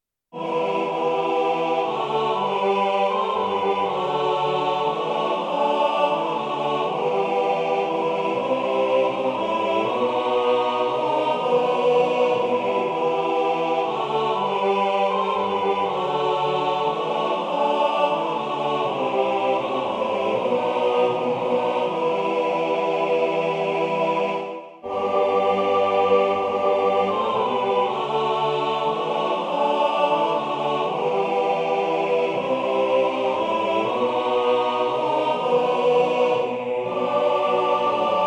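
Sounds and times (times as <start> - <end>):
chanting voices: 0.4 - 38.2
full ensemble playing folk tune: 0.4 - 38.2.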